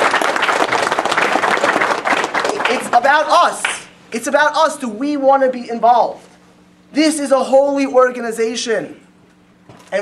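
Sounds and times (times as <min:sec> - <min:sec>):
crowd applause: 0:00.0 - 0:03.8
speech: 0:03.1 - 0:06.3, 0:06.9 - 0:09.0.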